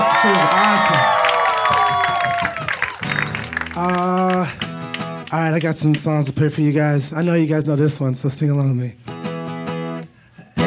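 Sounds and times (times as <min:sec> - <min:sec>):
crowd audience applause and cheering: 0:00.0 - 0:05.8
speech: 0:00.2 - 0:01.1, 0:05.4 - 0:09.1.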